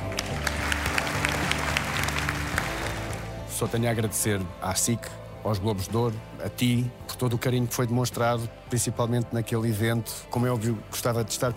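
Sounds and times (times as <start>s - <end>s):
applause: 0.0s - 3.5s
speech: 3.6s - 11.5s.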